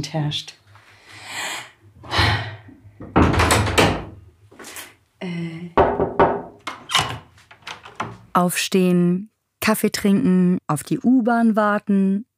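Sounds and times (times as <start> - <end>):
speech: 0.0 - 0.6, 8.4 - 12.3
door being opened: 3.0 - 4.2, 5.9 - 8.3.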